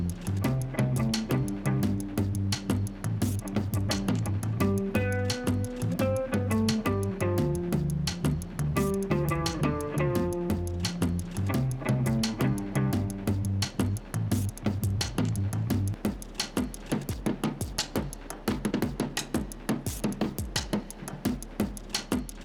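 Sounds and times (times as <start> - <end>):
drums with delay: 0.0 - 22.4
repeater guitar sketch: 4.6 - 13.2.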